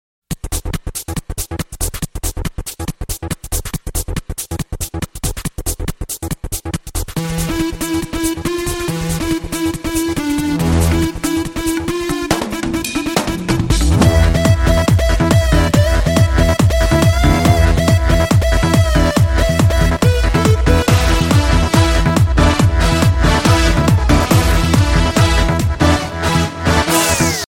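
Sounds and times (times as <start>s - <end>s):
DJ music: 0.5s - 27.4s.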